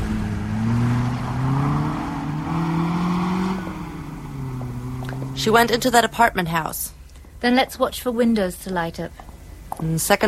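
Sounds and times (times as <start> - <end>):
car engine accelerating during pursuit: 0.0 - 6.4
speech: 5.4 - 10.2.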